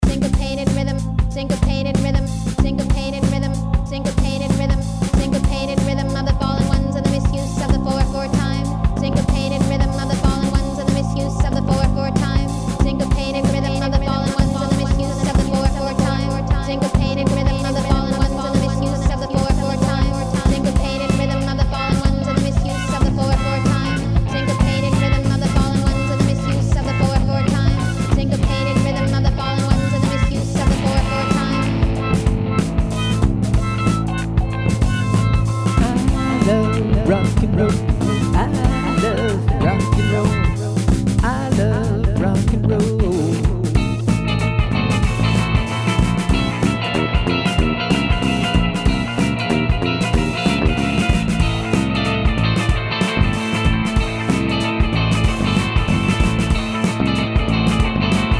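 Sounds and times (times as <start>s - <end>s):
syncopated rhythm: 0.0s - 58.3s.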